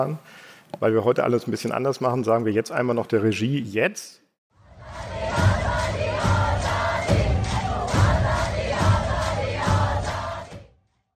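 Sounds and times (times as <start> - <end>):
speech: 0.0 - 4.2
large crowd chanting for freedom in unison: 4.6 - 10.7.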